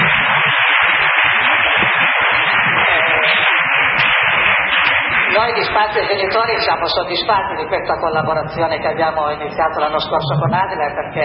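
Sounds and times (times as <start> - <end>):
audience applause: 0.0 - 10.9
speech: 5.5 - 11.2.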